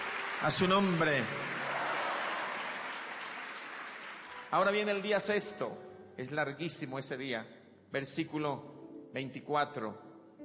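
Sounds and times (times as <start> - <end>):
congregation applauding during a sermon: 0.0 - 5.6
speech: 0.4 - 1.6, 4.5 - 10.1.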